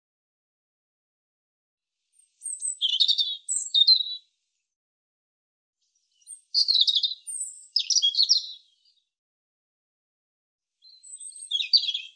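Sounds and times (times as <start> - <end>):
European robin singing: 2.2 - 4.3, 6.0 - 9.0, 10.8 - 12.1.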